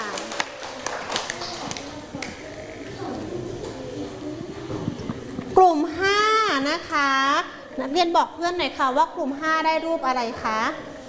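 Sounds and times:
classroom group clapping for a student group: 0:00.0 - 0:03.0
young voices chattering: 0:00.0 - 0:11.0
speech: 0:06.7 - 0:10.9.

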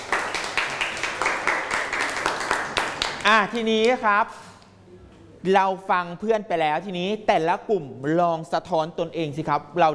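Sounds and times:
group applause for classmates: 0:00.0 - 0:03.4
speech: 0:03.3 - 0:04.5, 0:05.4 - 0:09.9.

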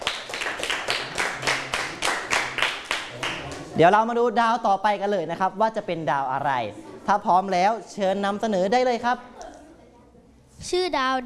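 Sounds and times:
classroom clapping: 0:00.0 - 0:03.8
speech: 0:03.8 - 0:09.4, 0:10.6 - 0:11.2.

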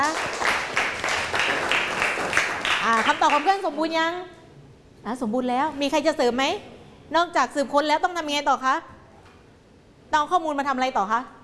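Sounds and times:
classroom applause: 0:00.0 - 0:03.6
speech: 0:03.0 - 0:04.4, 0:05.0 - 0:08.9, 0:10.1 - 0:11.4.

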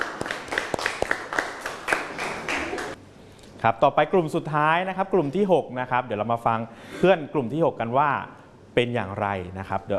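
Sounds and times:
classroom applause: 0:00.0 - 0:03.0
speech: 0:03.6 - 0:09.9.

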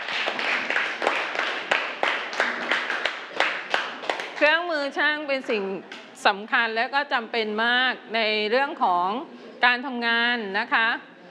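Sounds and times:
classroom applause: 0:00.0 - 0:04.5
speech: 0:04.4 - 0:11.1.

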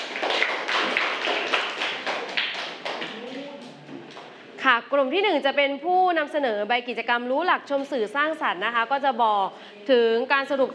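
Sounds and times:
group of people clapping in a classroom: 0:00.0 - 0:04.4
speech: 0:04.7 - 0:10.7.

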